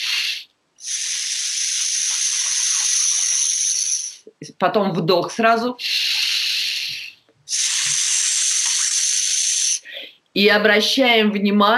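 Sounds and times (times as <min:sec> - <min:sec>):
person exhaling a sustained s sound: 0:00.0 - 0:04.3, 0:05.8 - 0:10.1
speech: 0:04.6 - 0:06.0, 0:10.4 - 0:11.7.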